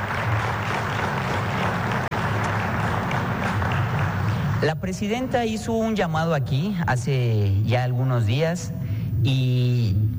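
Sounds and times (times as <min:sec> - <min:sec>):
audience applause: 0:00.0 - 0:04.8
speech: 0:04.6 - 0:10.1.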